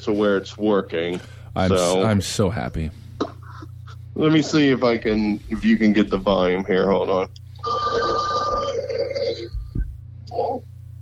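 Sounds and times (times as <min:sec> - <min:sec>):
speech: 0:00.0 - 0:03.3, 0:04.2 - 0:07.9
old telephone bell ringing: 0:07.6 - 0:09.3.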